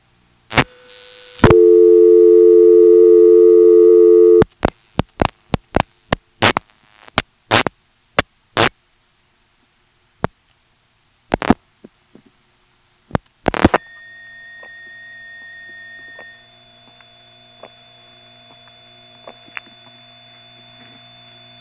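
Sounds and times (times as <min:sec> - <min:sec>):
multi-tone hum on telephone trunk line to Woodville on T carrier: 0:00.0 - 0:08.7, 0:11.3 - 0:21.5
short tone on telephone trunk line: 0:13.6 - 0:21.5.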